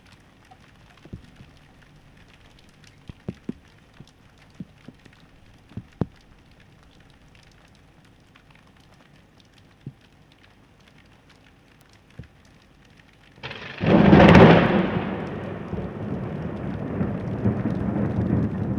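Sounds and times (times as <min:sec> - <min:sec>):
thunder: 0:13.4 - 0:18.7.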